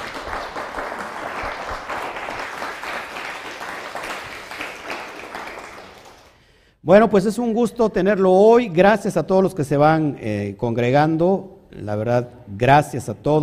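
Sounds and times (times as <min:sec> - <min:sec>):
applause: 0:00.0 - 0:06.6
speech: 0:06.8 - 0:13.4.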